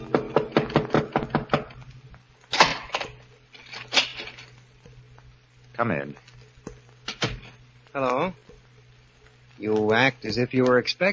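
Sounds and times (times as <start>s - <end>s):
knocking on a door: 0.1s - 1.7s
speech: 5.8s - 6.3s, 7.9s - 8.4s, 9.6s - 11.1s.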